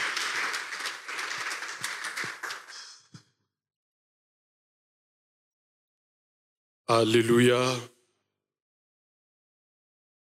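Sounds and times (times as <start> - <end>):
audience applause: 0.0 - 3.1
speech: 6.9 - 7.9.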